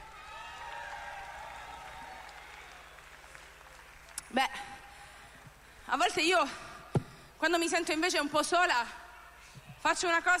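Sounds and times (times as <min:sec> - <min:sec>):
audience applause: 0:00.0 - 0:04.2
speech: 0:04.3 - 0:04.7, 0:05.9 - 0:06.7, 0:07.4 - 0:09.0, 0:09.8 - 0:10.3.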